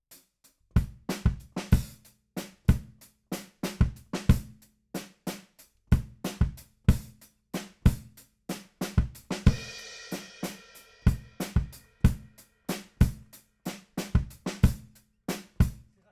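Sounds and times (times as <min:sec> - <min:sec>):
bass drum: 0:00.8 - 0:03.0, 0:03.6 - 0:04.6, 0:05.9 - 0:08.2, 0:08.8 - 0:09.9, 0:11.1 - 0:13.3, 0:14.0 - 0:15.8.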